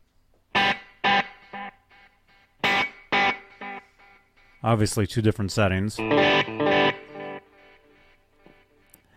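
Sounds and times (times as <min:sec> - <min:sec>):
electric guitar through Echoplex delay: 0:00.5 - 0:04.6, 0:06.0 - 0:08.9
speech: 0:04.6 - 0:06.5.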